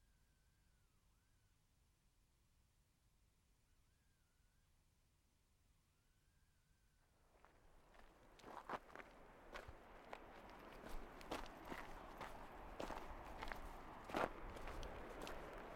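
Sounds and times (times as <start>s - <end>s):
footsteps of a walker outdoors heading toward a mountain summit: 7.4s - 15.7s.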